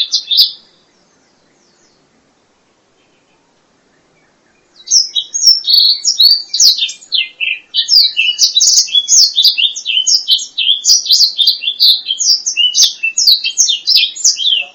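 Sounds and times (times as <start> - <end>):
black-throated laughingthrush whistled song: 4.8 - 14.7.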